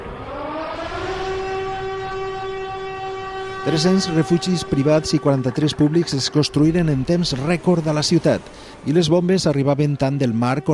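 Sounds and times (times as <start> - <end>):
air raid siren on the Fadrí bell tower: 0.0 - 10.7
speech: 3.6 - 10.7.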